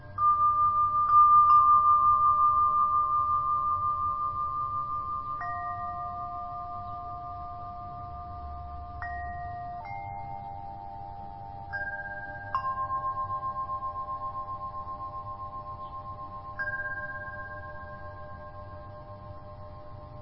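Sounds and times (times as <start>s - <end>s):
Tibetan bells ringing: 0.0s - 20.2s.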